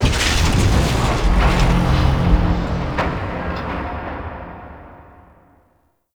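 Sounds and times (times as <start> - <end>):
void dragon moving: 0.0 - 4.0.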